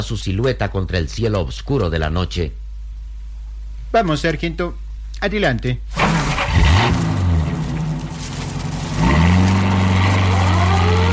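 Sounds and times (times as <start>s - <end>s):
speech: 0.0s - 2.6s, 3.9s - 7.0s
patrol cars driving through a gate: 6.0s - 11.1s.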